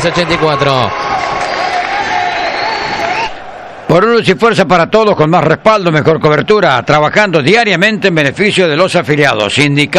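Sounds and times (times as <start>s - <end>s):
speech: 0.0s - 1.4s, 3.9s - 9.9s
basketball crowd cheering and roaring after a made basket in a Talleres game: 0.0s - 7.6s
commentator's voice: 3.9s - 9.9s.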